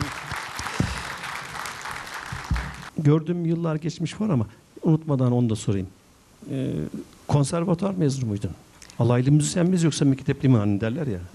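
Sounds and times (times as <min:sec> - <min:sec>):
audience applause thanking a teacher-musician: 0:00.0 - 0:02.9
speech: 0:03.0 - 0:11.3.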